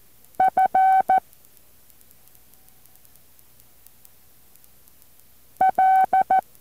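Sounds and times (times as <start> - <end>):
Morse code tones being sent: 0.4 - 1.2, 5.6 - 6.4.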